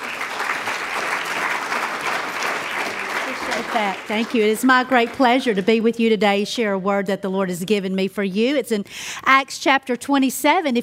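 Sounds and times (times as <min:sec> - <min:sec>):
audience applause welcoming a speaker: 0:00.0 - 0:05.7
speech: 0:03.6 - 0:10.8.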